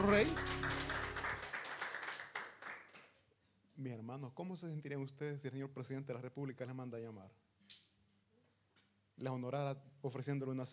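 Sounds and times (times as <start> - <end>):
speech: 0.0 - 0.5, 3.8 - 7.4, 9.2 - 10.7
applause: 0.0 - 3.3.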